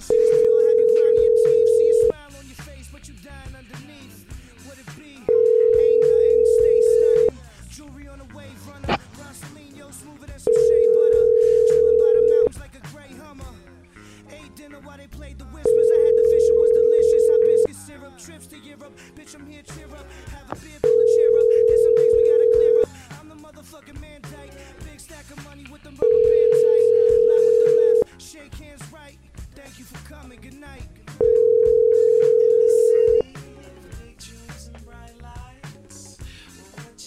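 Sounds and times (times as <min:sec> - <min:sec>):
telephone ringing tone as a call is placed: 0:00.0 - 0:02.1, 0:05.3 - 0:07.3, 0:10.5 - 0:12.5, 0:15.7 - 0:17.7, 0:20.8 - 0:22.9, 0:26.0 - 0:28.0, 0:31.2 - 0:33.3.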